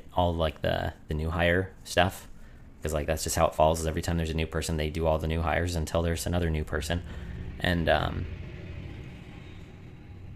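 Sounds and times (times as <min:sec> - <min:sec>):
speech: 0:00.2 - 0:08.4
loud diesel truck passing by outside: 0:05.2 - 0:10.3.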